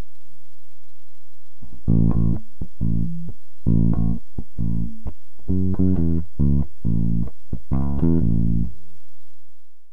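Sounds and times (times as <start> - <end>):
Fender bass guitar with tapewound strings: 1.6 - 8.8.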